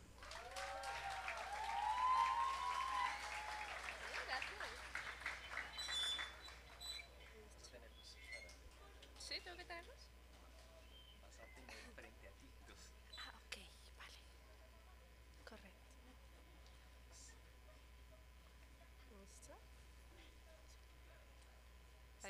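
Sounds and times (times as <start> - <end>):
audience applause: 0.0 - 7.5
whistle: 0.4 - 3.9, 5.0 - 7.2.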